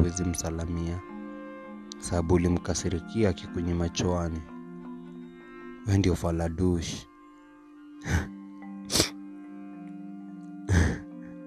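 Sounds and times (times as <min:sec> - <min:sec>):
speech: 0:00.0 - 0:01.1, 0:02.0 - 0:04.5, 0:05.8 - 0:07.1, 0:08.0 - 0:08.3
person sniffling: 0:08.9 - 0:09.2, 0:10.7 - 0:11.1.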